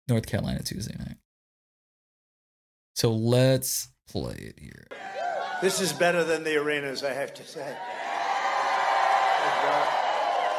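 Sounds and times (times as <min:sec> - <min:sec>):
speech: 0:00.1 - 0:01.2, 0:03.0 - 0:08.1, 0:09.4 - 0:10.0
large rally crowd cheering and chanting: 0:04.9 - 0:06.4, 0:07.5 - 0:10.5.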